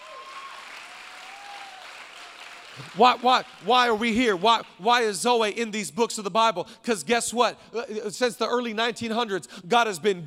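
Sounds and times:
audience clapping: 0.0s - 5.1s
speech: 2.8s - 10.2s.

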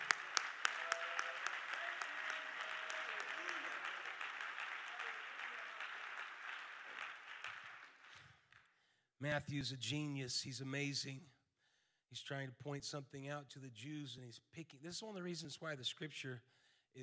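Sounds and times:
audience clapping: 0.0s - 8.6s
speech: 9.2s - 11.3s, 12.1s - 17.0s.

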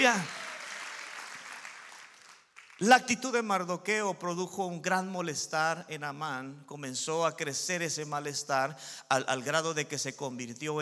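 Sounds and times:
speech: 0.0s - 0.4s, 2.8s - 10.8s
audience applauding: 0.0s - 3.0s.

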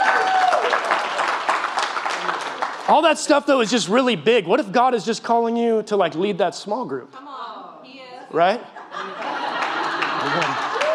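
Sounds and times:
crowd applause for pastors: 0.0s - 3.4s, 9.0s - 10.9s
speech: 2.9s - 7.2s, 8.3s - 9.2s, 10.2s - 10.7s
laughter: 8.5s - 10.9s.

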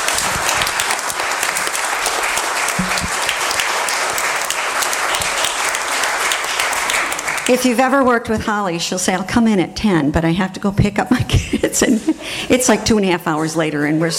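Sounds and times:
audience applause: 0.0s - 7.6s
speech: 7.5s - 14.1s
laughter: 11.1s - 12.2s.

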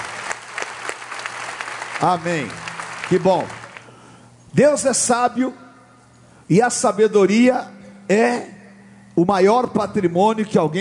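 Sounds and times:
audience applause: 0.0s - 4.0s
speech: 2.0s - 3.6s, 4.5s - 5.6s, 6.5s - 8.5s, 9.2s - 10.7s.

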